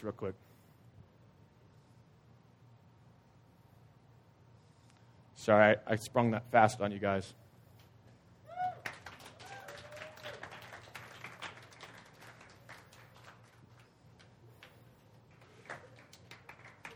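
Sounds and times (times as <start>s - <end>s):
speech: 0.0s - 0.6s, 5.4s - 7.4s
whistle and cheer: 8.5s - 10.7s
crowd clapping: 8.5s - 16.9s.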